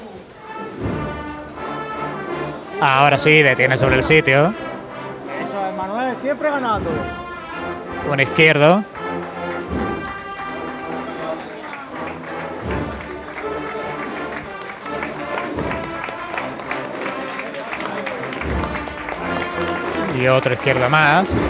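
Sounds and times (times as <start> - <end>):
crowd applauding: 0.0 - 21.4
speech: 2.8 - 4.6, 6.2 - 7.2, 8.0 - 9.0, 20.2 - 21.4.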